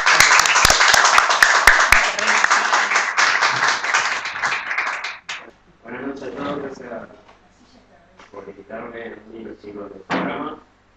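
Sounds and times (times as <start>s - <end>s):
audience applause at a live poetry and literature event: 0.0s - 5.5s.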